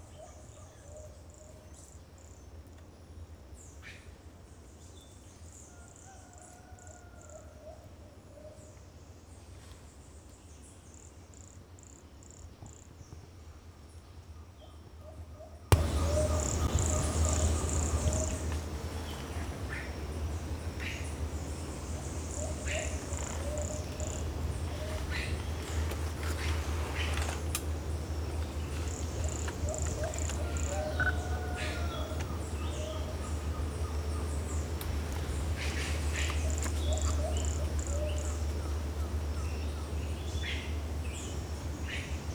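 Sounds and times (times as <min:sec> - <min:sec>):
pumpkin toadlet Brachycephalus sulfuratus calling: 0:15.7 - 0:25.8
birds whistling and chirping: 0:15.7 - 0:42.3
low constant hum: 0:15.7 - 0:42.3.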